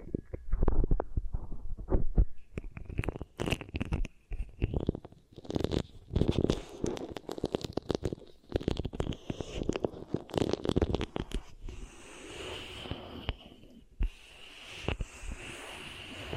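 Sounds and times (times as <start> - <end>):
sharp clicks and pops: 0.0 - 11.6
beeswax squishing and sticky crackling: 0.0 - 14.1.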